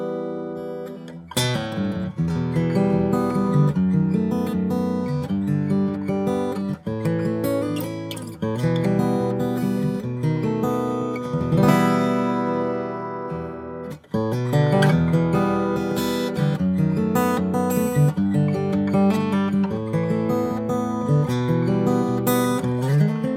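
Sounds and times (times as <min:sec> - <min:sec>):
Guild F 55 Maple guitar: 0:00.0 - 0:23.3.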